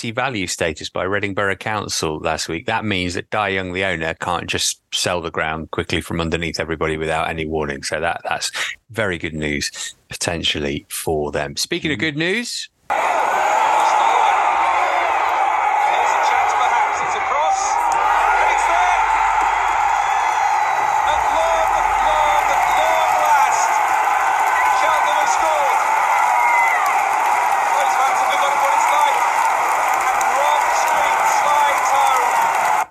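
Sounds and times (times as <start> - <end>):
speech: 0.0 - 13.1
football crowd roaring and cheering after a goal: 12.9 - 32.8
scattered crowd clapping: 13.4 - 32.8.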